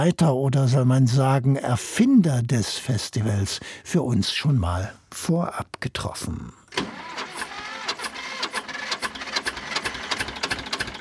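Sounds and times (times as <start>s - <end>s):
speech: 0.0s - 6.6s
1965 tractor chugging across festival grounds: 6.8s - 11.0s.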